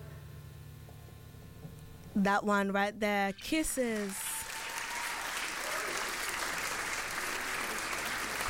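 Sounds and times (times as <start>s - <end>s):
speech: 2.2s - 4.2s
live audience applause: 3.9s - 8.4s.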